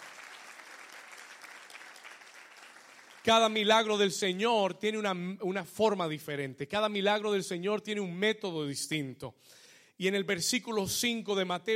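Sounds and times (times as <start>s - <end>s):
audience applause: 0.0s - 3.6s
speech: 3.2s - 11.7s.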